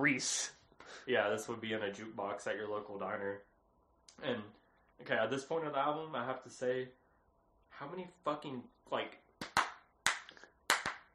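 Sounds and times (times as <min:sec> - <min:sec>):
speech: 0:00.0 - 0:03.5, 0:04.2 - 0:07.0, 0:07.7 - 0:09.2
hand clapping in a song: 0:09.4 - 0:11.1.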